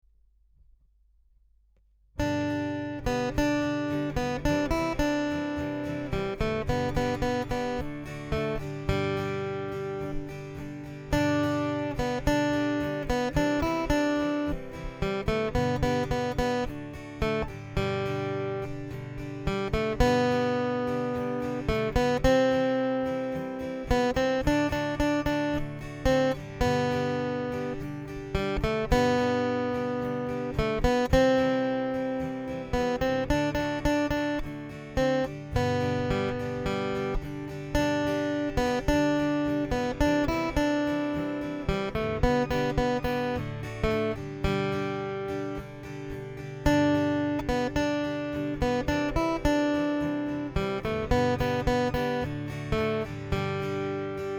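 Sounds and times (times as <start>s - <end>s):
acoustic guitar: 2.2s - 54.3s.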